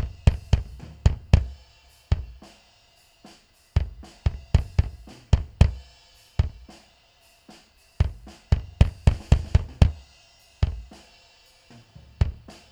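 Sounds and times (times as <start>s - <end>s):
bass drum: 0.0s - 2.5s, 3.8s - 6.7s, 8.0s - 11.0s, 11.8s - 12.7s.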